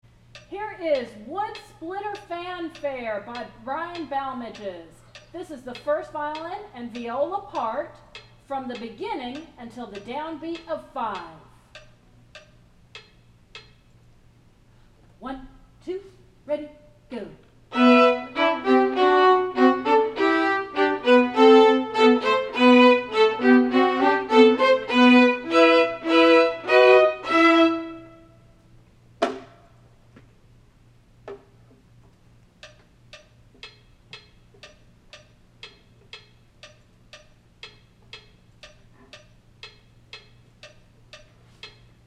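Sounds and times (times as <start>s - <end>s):
first viola: 17.7s - 28.3s.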